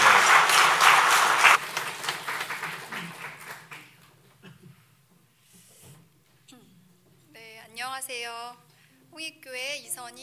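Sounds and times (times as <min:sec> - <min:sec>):
audience applause: 0:00.0 - 0:04.0
speech: 0:08.0 - 0:10.2.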